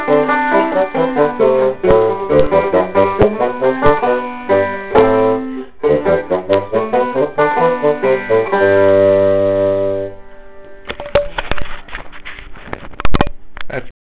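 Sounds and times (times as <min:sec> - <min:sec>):
banjo playing a hornpipe in a duet: 0:00.0 - 0:10.7.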